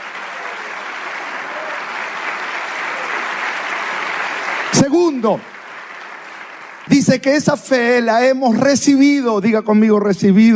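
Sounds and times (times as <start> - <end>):
audience applause: 0.0 - 7.5
speech: 4.7 - 5.5, 6.9 - 10.5.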